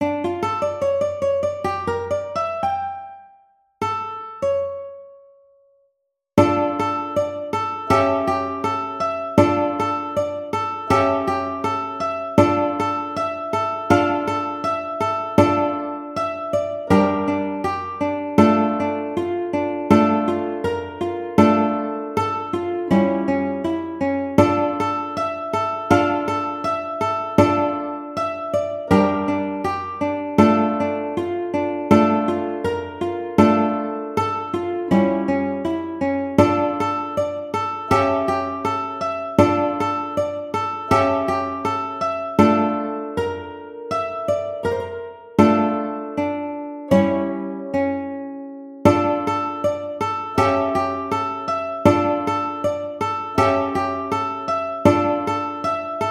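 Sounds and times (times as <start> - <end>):
ukulele melody: 0.0 - 5.5, 6.4 - 56.1.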